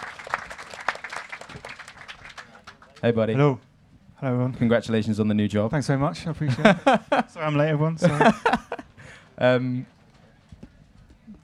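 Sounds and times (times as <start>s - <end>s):
small group clapping: 0.0s - 3.1s
speech: 3.0s - 8.6s, 9.4s - 9.9s
laughter: 6.4s - 9.3s.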